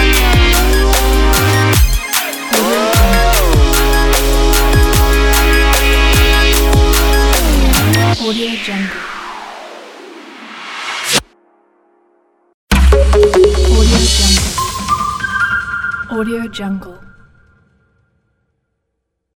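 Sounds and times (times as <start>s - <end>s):
modern electronic logo jingle: 0.0s - 8.2s, 12.7s - 16.1s.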